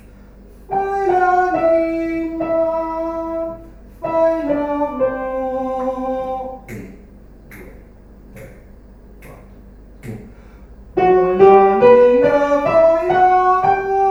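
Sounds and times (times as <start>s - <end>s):
soprano soloists singing a lullaby: 0.7s - 7.0s, 11.0s - 14.0s.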